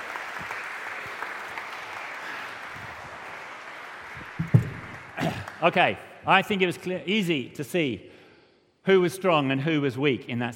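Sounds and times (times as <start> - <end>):
audience applause: 0.0 - 5.8
speech: 5.6 - 8.1, 8.8 - 10.5.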